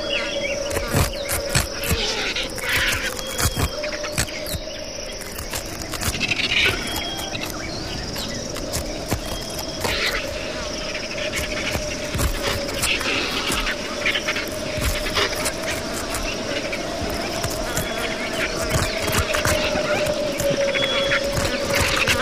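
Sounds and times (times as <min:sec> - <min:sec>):
feeding vultures hissing and squawking: 0:00.1 - 0:04.6, 0:05.2 - 0:22.1.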